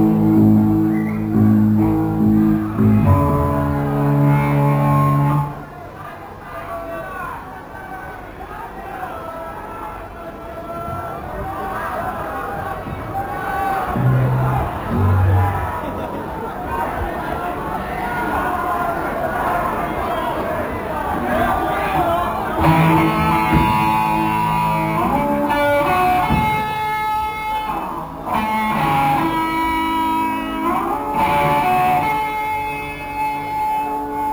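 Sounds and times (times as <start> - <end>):
instruments tuning up: 0.0 - 5.8, 13.1 - 34.3
laughter: 0.0 - 34.2.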